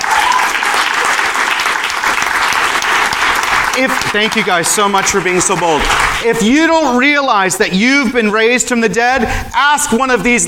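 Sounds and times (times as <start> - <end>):
audience cheering and applause: 0.0 - 6.3
speech: 3.8 - 10.4.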